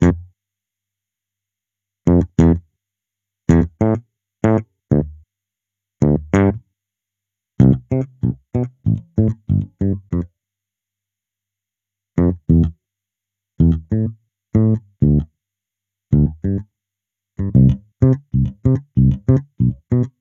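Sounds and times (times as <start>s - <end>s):
electric bass: 0.0s - 0.3s, 2.1s - 2.6s, 3.5s - 5.2s, 6.0s - 6.6s, 7.6s - 10.3s, 12.2s - 12.7s, 13.6s - 15.3s, 16.1s - 16.6s, 17.4s - 20.1s.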